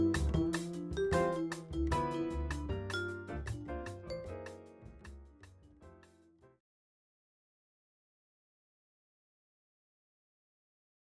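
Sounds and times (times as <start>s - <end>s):
steel drum playing: 0.0s - 4.6s.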